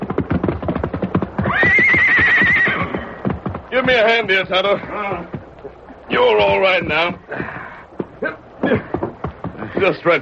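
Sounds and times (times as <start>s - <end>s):
horse hooves clattering: 0.0s - 10.2s
horse whinnying: 1.3s - 3.2s
speech: 3.8s - 5.4s, 6.1s - 7.5s, 9.8s - 10.2s.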